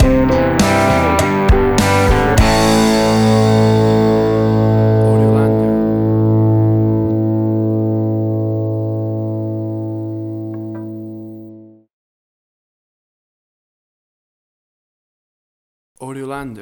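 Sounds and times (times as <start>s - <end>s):
big old rock stinger: 0.0s - 11.8s.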